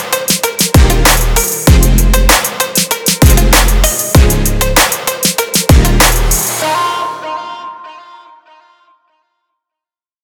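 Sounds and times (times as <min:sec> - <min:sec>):
trap fashion bass: 0:00.1 - 0:02.6, 0:03.2 - 0:04.8, 0:05.7 - 0:08.6.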